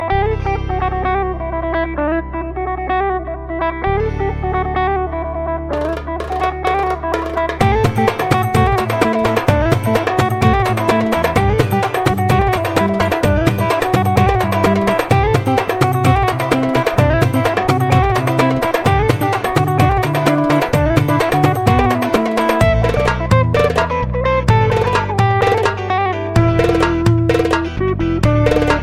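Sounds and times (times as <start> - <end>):
Egyptian music: 0.0 - 28.8.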